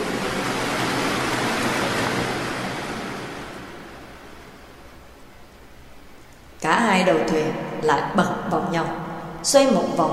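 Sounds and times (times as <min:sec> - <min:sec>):
large wave crashing: 0:00.0 - 0:05.3
speech: 0:07.0 - 0:10.1.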